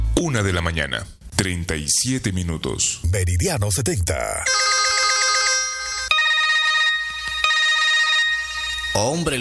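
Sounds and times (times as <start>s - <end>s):
speech: 0.2s - 5.0s, 9.0s - 9.3s
mobile phone ringing with an electronic ringtone: 4.5s - 9.3s.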